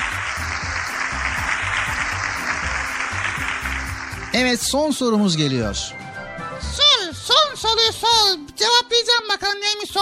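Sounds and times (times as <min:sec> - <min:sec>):
crowd applause: 0:00.0 - 0:05.0
speech: 0:04.4 - 0:06.0, 0:07.6 - 0:10.0.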